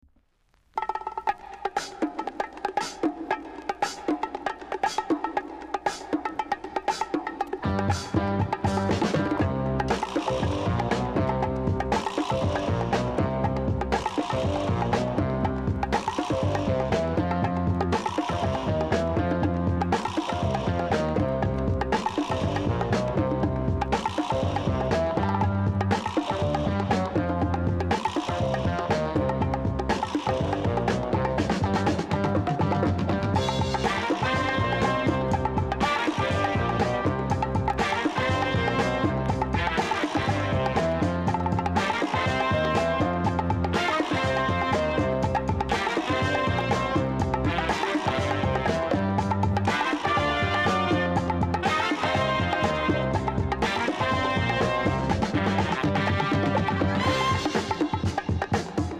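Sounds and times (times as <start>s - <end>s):
bongo rock music: 0.5s - 58.9s.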